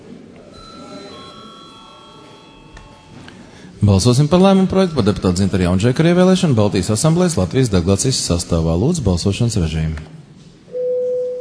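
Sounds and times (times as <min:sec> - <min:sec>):
low room murmur: 0:00.0 - 0:10.7
bell sounding in the Latvian parliament before a vote: 0:00.5 - 0:06.5, 0:10.7 - 0:11.3
speech: 0:03.8 - 0:10.2.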